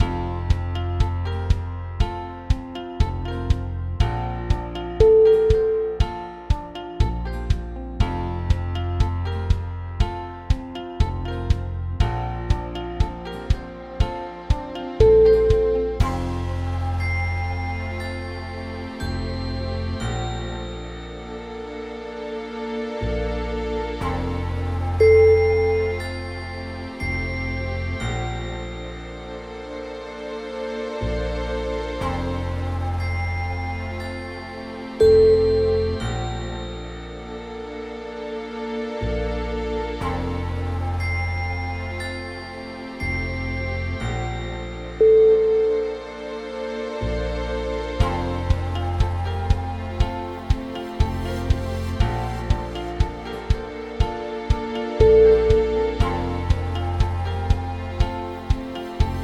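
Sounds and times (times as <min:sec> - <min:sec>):
corporate chill music: 0:00.0 - 0:22.1, 0:23.0 - 0:38.1, 0:39.2 - 0:59.2.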